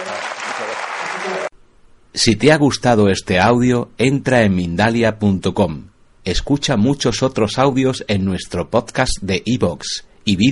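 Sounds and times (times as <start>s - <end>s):
audience applause: 0.0s - 1.5s
speech: 2.2s - 10.5s.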